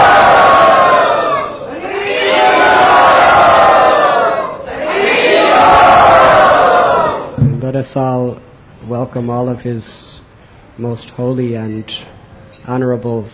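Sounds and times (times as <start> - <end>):
crowd chanting at a religious gathering: 0.0 - 7.4
speech: 7.9 - 10.2, 10.8 - 13.3.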